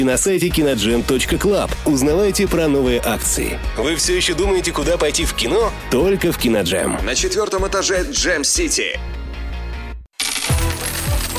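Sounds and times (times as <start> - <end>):
speech: 0.0 - 9.2
coins clinking and jingling: 10.2 - 11.3.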